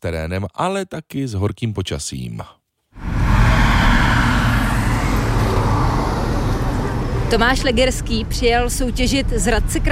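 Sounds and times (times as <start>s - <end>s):
speech: 0.0s - 2.6s, 7.3s - 9.8s
tractor engines roaring in a Traktrial race at the tank range near Pístov: 3.0s - 9.8s.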